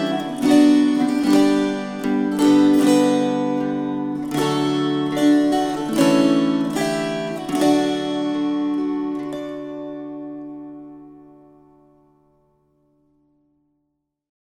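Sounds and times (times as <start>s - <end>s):
string choir: 0.0s - 11.2s.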